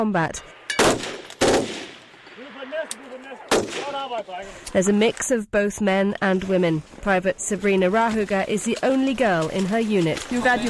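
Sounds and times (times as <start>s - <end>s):
speech: 0.0s - 0.6s, 2.6s - 10.6s
gunfire during a platoon's live firing exercise in North Denmark: 0.8s - 2.1s, 3.5s - 4.1s.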